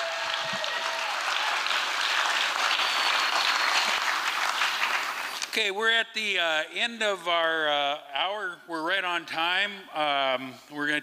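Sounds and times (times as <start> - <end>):
audience applauding: 0.0 - 5.4
speech: 5.6 - 11.0.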